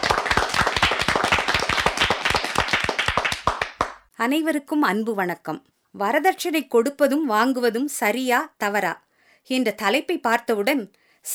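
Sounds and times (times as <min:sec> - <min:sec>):
audience clapping in welcome: 0:00.0 - 0:04.1
speech: 0:04.2 - 0:11.3.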